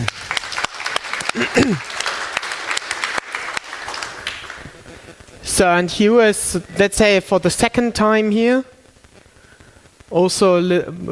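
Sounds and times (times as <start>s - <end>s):
audience applause: 0.0s - 5.4s
speech: 1.4s - 2.0s, 5.6s - 8.7s, 10.1s - 11.1s.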